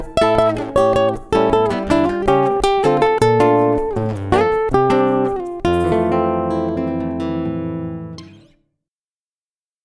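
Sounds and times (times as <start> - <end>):
jazz on a Yamaha SLG 130NW: 0.0 - 7.0.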